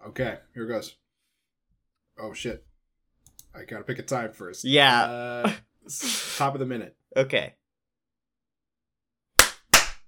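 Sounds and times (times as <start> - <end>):
speech: 0.2 - 1.0, 2.2 - 2.7, 3.6 - 7.6
single hand clap for syncing: 9.4 - 10.0.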